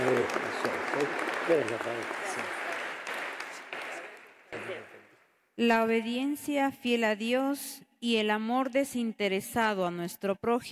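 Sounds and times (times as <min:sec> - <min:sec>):
applause for birthday celebrant: 0:00.0 - 0:05.2
speech: 0:01.0 - 0:02.2, 0:05.6 - 0:10.7.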